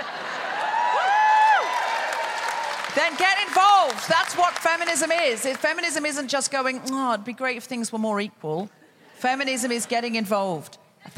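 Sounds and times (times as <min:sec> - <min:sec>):
live audience cheering: 0:00.0 - 0:04.5
high whoops: 0:00.6 - 0:02.8
speech: 0:03.0 - 0:11.1.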